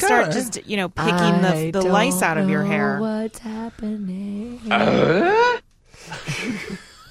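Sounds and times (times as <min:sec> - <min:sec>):
mumbled vocal sounds: 0:00.0 - 0:05.6
person imitating Scooby-Doo's bark-like voice: 0:00.0 - 0:05.6
speech: 0:00.2 - 0:06.9
laughter: 0:06.0 - 0:07.1.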